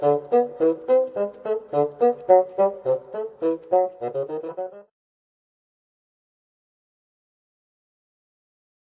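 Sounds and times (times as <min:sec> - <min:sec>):
bassoon: 0:00.0 - 0:04.9.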